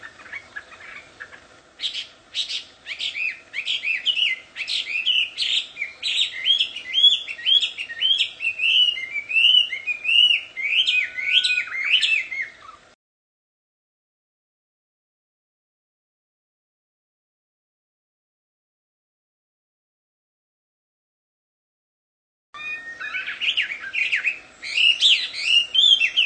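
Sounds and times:
wild Chinese hwamei singing in its natural habitat: 0:00.0 - 0:13.0, 0:22.6 - 0:26.2.

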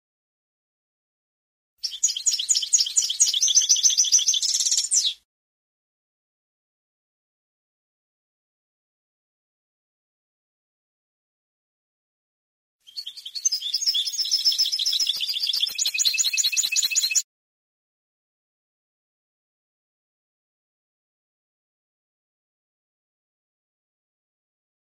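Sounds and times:
European goldfinch song: 0:01.8 - 0:05.2, 0:12.8 - 0:17.3.

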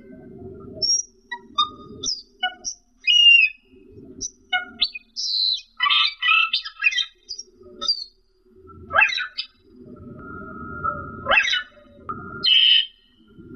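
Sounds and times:
Camperling singing whistles and chattering: 0:00.8 - 0:03.6, 0:04.2 - 0:08.1, 0:11.4 - 0:11.8, 0:12.4 - 0:13.0.

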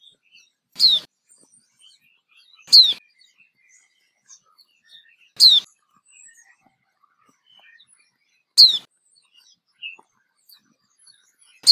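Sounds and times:
white-eye chirping: 0:00.8 - 0:01.1, 0:05.4 - 0:05.7.

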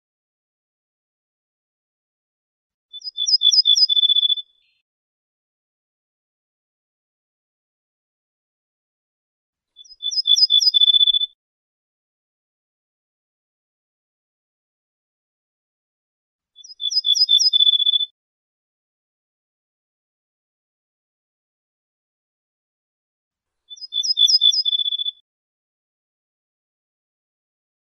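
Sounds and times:
ortolan bunting singing: 0:02.9 - 0:04.8, 0:09.8 - 0:11.4, 0:16.6 - 0:18.1, 0:23.7 - 0:25.2.

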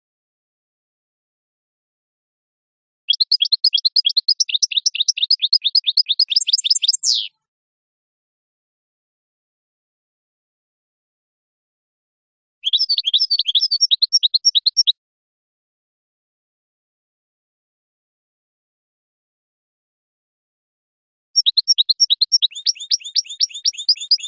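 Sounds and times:
European goldfinch singing: 0:03.1 - 0:07.3, 0:12.6 - 0:14.9, 0:21.4 - 0:24.2.

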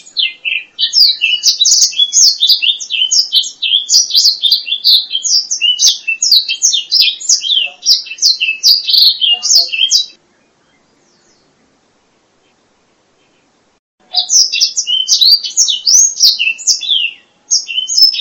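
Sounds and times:
black-throated laughingthrush whistled song: 0:00.0 - 0:10.2, 0:14.1 - 0:18.1.

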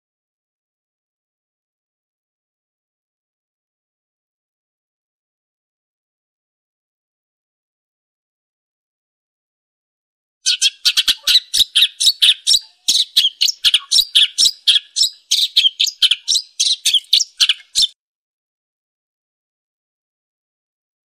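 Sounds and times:
long-tailed shrike chattering song: 0:10.5 - 0:18.0.

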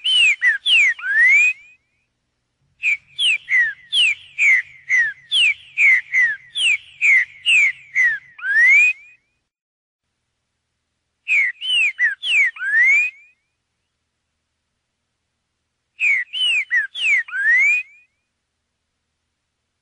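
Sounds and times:
green-winged saltator song: 0:00.0 - 0:02.1, 0:02.8 - 0:09.4, 0:11.3 - 0:14.0, 0:16.0 - 0:18.3.

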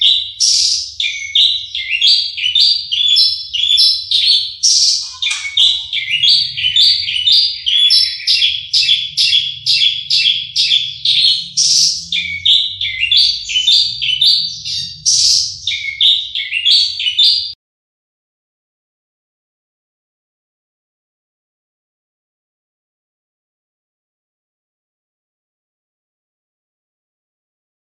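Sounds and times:
Horsfield's bush lark singing: 0:00.0 - 0:17.6.

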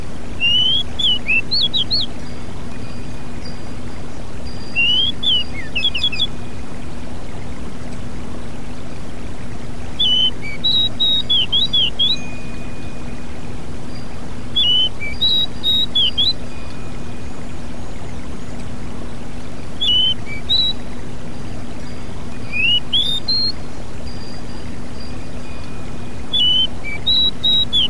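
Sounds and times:
Pied bushchat song: 0:00.0 - 0:27.8.

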